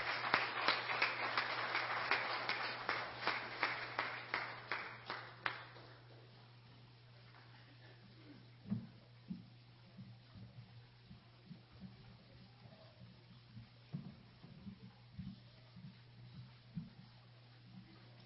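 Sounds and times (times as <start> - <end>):
audience clapping hands in a steady beat: 0.0 - 6.3
low steady hum: 0.0 - 18.2.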